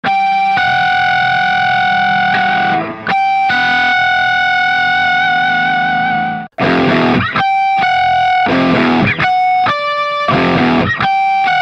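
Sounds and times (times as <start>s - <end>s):
rock guitar ringtone: 0.0s - 11.5s.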